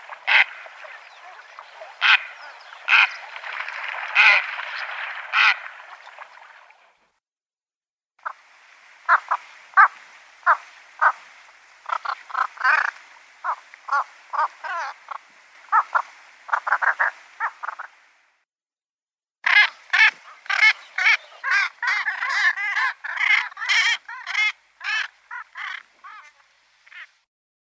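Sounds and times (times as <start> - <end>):
squacco heron rasping calls: 0.0 - 4.6, 9.1 - 11.2, 11.9 - 17.8, 19.5 - 27.1.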